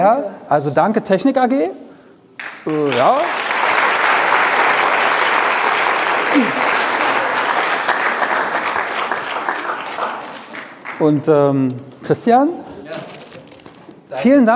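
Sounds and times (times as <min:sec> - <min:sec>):
speech: 0:00.0 - 0:01.8, 0:02.4 - 0:03.5, 0:06.4 - 0:06.6, 0:11.0 - 0:12.7, 0:14.2 - 0:14.5
audience applause: 0:02.4 - 0:11.2.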